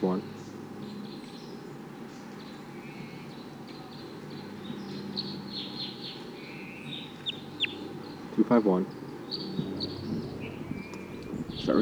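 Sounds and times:
wild bird chirping: 0:00.0 - 0:11.8
throaty clucking bird notes: 0:04.3 - 0:11.8
steady low hum: 0:09.4 - 0:11.8.

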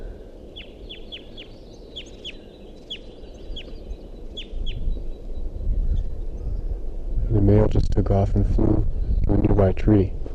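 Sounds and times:
nestling begging calls from nest tree: 0:00.0 - 0:06.8
speech: 0:07.5 - 0:10.2.

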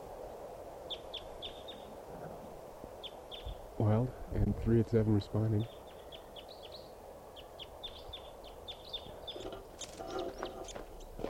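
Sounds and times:
steady hum: 0:00.0 - 0:11.2
crossbill chittering calls in flight: 0:00.9 - 0:01.9, 0:03.0 - 0:03.6, 0:05.6 - 0:11.2
speech: 0:03.8 - 0:05.8.

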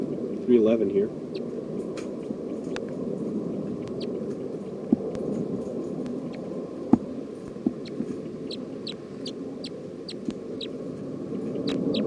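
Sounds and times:
low rumbling background: 0:00.0 - 0:12.0
speech: 0:00.5 - 0:01.4
high-pitched bird chirps: 0:07.8 - 0:10.7, 0:11.6 - 0:12.0.

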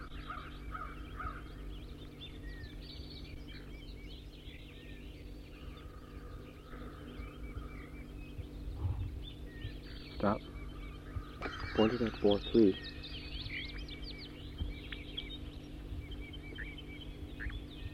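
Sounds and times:
wild bird singing: 0:00.0 - 0:17.9
speech: 0:10.2 - 0:10.5, 0:11.8 - 0:12.9.

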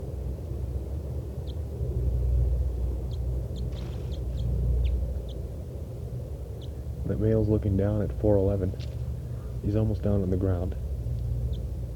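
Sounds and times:
steady low rumble: 0:00.0 - 0:11.9
wild bird chittering: 0:03.0 - 0:05.5, 0:06.5 - 0:06.9, 0:11.3 - 0:11.9
speech: 0:07.1 - 0:09.0, 0:09.6 - 0:10.8.

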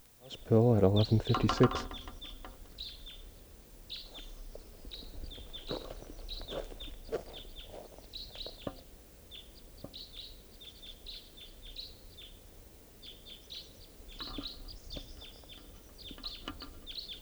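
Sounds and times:
two birds calling: 0:00.0 - 0:17.2
speech: 0:00.3 - 0:02.1.

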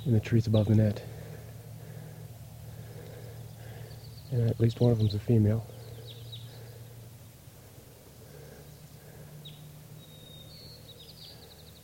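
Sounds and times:
speech: 0:00.0 - 0:01.2, 0:04.3 - 0:05.7
wild crossbills calling: 0:00.0 - 0:11.8.

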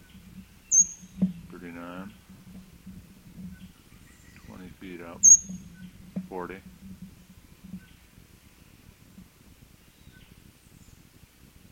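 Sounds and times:
bird calling overhead: 0:00.0 - 0:02.6, 0:03.4 - 0:06.8
speech: 0:06.3 - 0:06.7.

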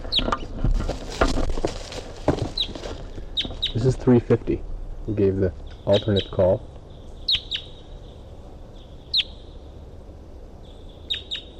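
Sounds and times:
wild bird calling: 0:00.0 - 0:04.2, 0:04.9 - 0:11.5
speech: 0:03.8 - 0:06.7.

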